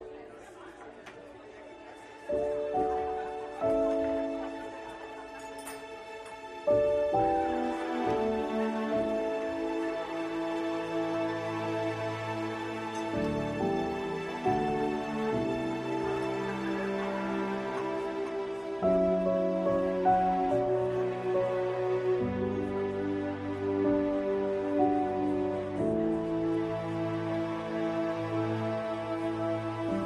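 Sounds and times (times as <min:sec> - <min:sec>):
instrumental music: 0:02.2 - 0:30.0.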